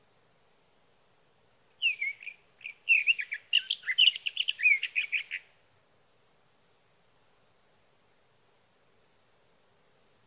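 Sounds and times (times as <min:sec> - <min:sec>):
sage thrasher song: 0:01.8 - 0:05.4.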